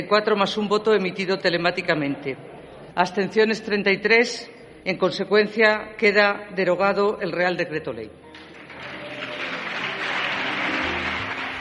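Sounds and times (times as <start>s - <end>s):
speech: 0.0s - 8.2s
parliament applause after a vote: 8.3s - 11.5s.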